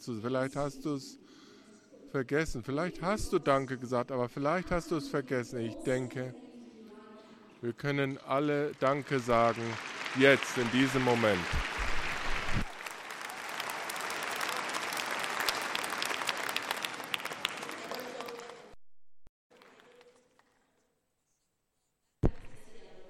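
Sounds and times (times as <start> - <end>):
speech: 0.0 - 1.2, 2.1 - 6.4, 7.6 - 11.7
audience clapping: 8.4 - 18.8, 19.5 - 20.6.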